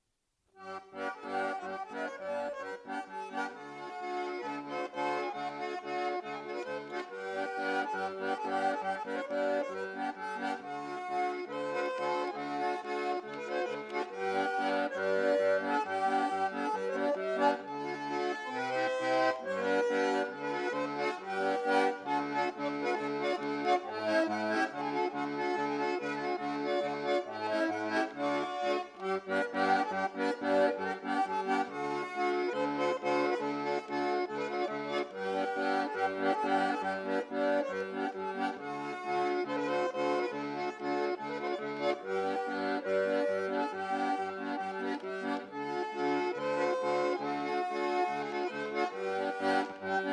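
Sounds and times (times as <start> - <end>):
polka dance music: 0.5 - 50.1.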